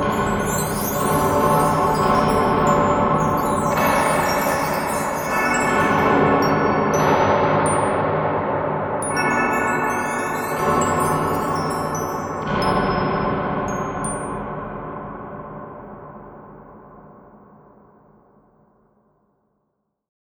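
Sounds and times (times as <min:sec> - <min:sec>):
wind chimes: 0:00.0 - 0:08.1, 0:09.0 - 0:14.5.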